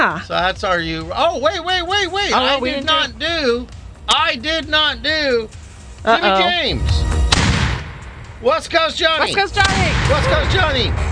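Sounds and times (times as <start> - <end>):
speech: 0.0 - 7.2, 8.4 - 11.1
cannon firing sound effect: 7.3 - 8.1, 9.6 - 11.1.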